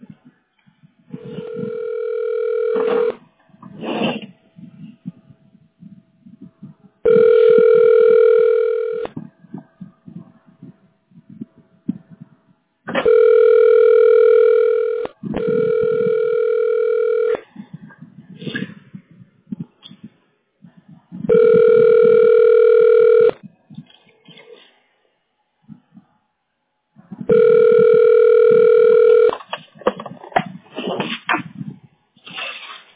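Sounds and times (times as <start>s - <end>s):
buzzy telephone ring tone: 1.2s - 3.2s, 7.1s - 9.1s, 13.0s - 17.4s, 21.3s - 23.4s, 27.3s - 29.4s.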